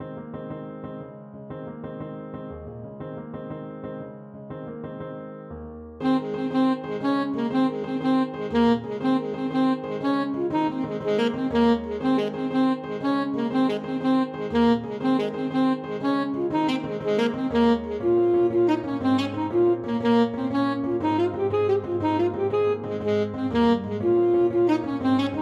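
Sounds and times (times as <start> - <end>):
alto saxophone: 6.0 - 25.4.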